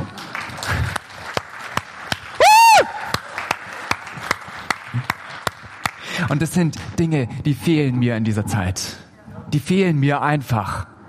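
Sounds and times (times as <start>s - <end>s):
scattered clapping from a small gathering: 0.0s - 6.1s
speech: 6.3s - 10.9s.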